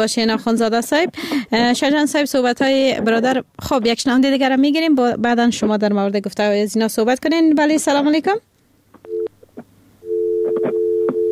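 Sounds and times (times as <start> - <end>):
speech: 0.0 - 8.5
telephone busy tone: 9.1 - 9.3, 10.0 - 11.3.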